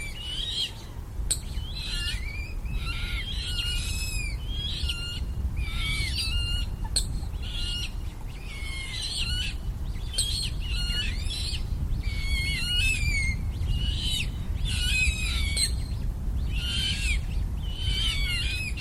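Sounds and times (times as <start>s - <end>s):
Eurasian coot young calling: 0.0s - 18.7s.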